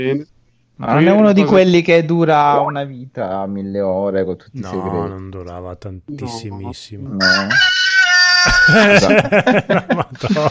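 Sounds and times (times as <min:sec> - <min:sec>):
speech: 0:00.0 - 0:10.4
rooster-crow alarm ringtone: 0:07.2 - 0:08.8
laughter: 0:08.5 - 0:10.4.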